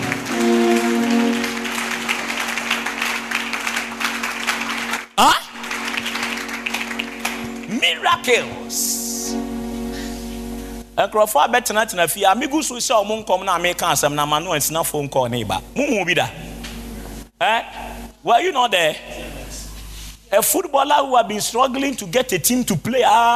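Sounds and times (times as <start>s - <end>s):
audience clapping: 0.0s - 8.7s
speech: 8.2s - 9.4s, 11.0s - 16.5s, 17.4s - 19.2s, 20.3s - 23.3s.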